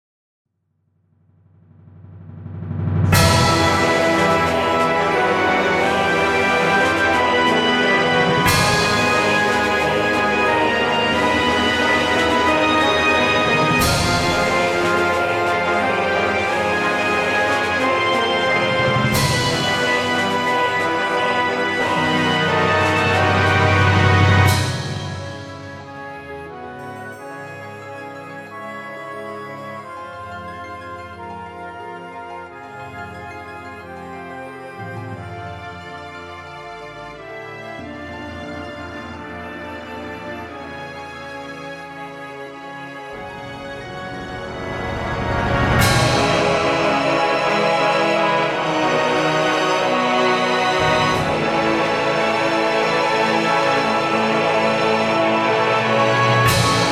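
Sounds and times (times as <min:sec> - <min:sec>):
instrumental music: 0:03.1 - 0:56.9.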